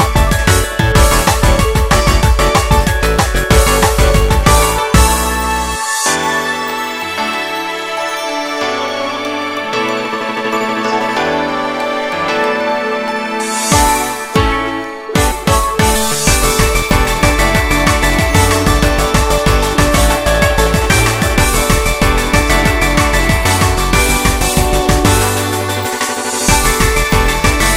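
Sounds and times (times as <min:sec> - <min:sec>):
karaoke singing: 0:00.0 - 0:27.7.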